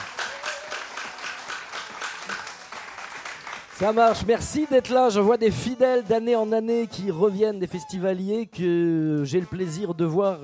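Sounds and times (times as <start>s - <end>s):
audience applause: 0.0s - 5.2s
speech: 3.8s - 10.4s.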